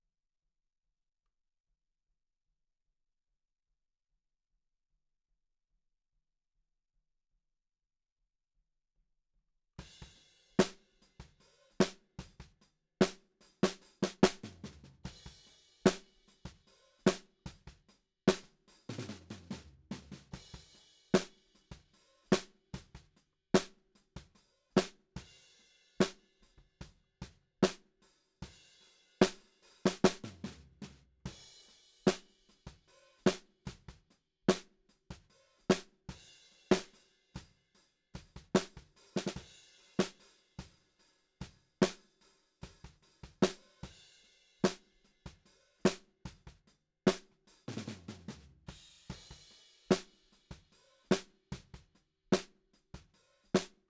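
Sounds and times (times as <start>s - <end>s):
snare drum: 10.0s - 25.0s, 27.6s - 27.9s, 29.2s - 36.1s, 36.7s - 37.0s, 38.2s - 40.8s, 41.4s - 44.0s, 44.6s - 53.8s.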